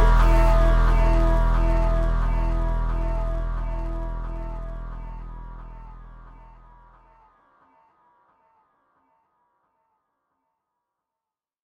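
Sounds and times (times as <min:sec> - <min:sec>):
pulsing electronic music: 0:00.0 - 0:06.7.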